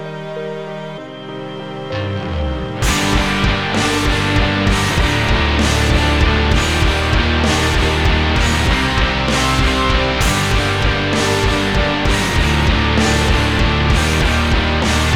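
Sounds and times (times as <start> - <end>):
instrumental music: 0.0 - 15.1.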